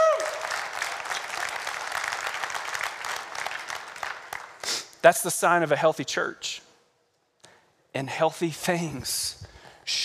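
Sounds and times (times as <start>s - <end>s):
audience applause: 0.0s - 4.6s
speech: 5.0s - 6.6s, 8.0s - 10.0s.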